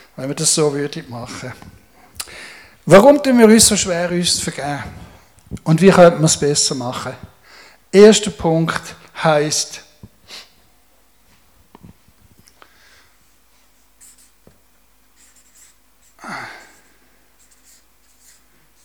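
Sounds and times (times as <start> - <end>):
speech: 0.2 - 1.8, 2.9 - 7.3, 7.9 - 10.4
writing something down: 13.8 - 14.6, 15.2 - 18.8.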